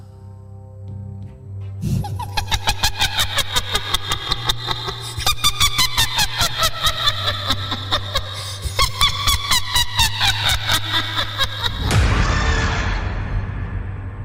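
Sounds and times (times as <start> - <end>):
low hum: 0.0 - 14.2
ghost's shrill cackling laugh: 1.9 - 11.9
rushing noise: 11.7 - 14.2.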